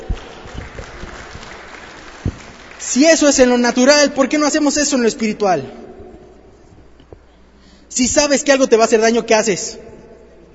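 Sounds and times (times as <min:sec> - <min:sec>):
audience applause for a volunteer: 0:00.0 - 0:03.4
speech: 0:02.8 - 0:05.8, 0:08.0 - 0:09.9.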